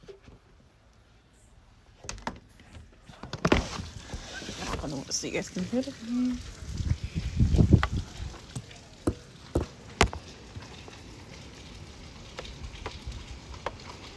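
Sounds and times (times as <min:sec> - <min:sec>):
rain falling: 0:03.7 - 0:14.1
speech: 0:04.9 - 0:06.6.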